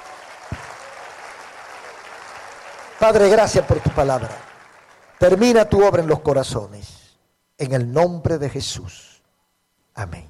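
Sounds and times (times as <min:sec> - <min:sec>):
church congregation clapping during a sermon: 0:00.0 - 0:06.3
speech: 0:03.0 - 0:04.5, 0:05.2 - 0:07.0, 0:07.6 - 0:09.1, 0:10.0 - 0:10.2.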